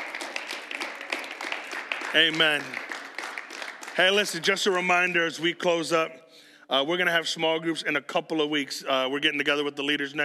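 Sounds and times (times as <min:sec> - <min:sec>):
crowd audience hand clapping: 0:00.0 - 0:05.2
speech: 0:02.1 - 0:02.8, 0:04.0 - 0:10.2.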